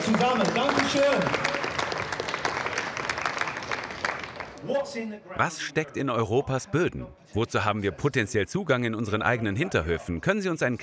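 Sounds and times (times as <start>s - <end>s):
crowd applause: 0.0s - 4.6s
speech: 0.1s - 1.6s, 4.6s - 10.8s.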